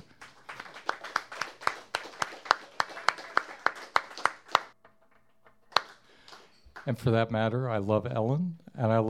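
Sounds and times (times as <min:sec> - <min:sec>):
applause: 0:00.0 - 0:07.1
speech: 0:06.9 - 0:09.0.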